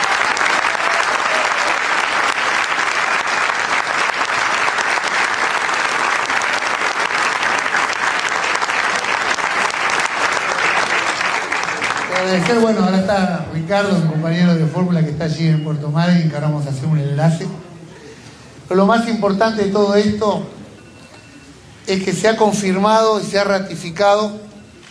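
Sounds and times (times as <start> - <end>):
audience applause: 0.0 - 14.0
speech: 12.5 - 17.6, 18.7 - 20.6, 21.9 - 24.5.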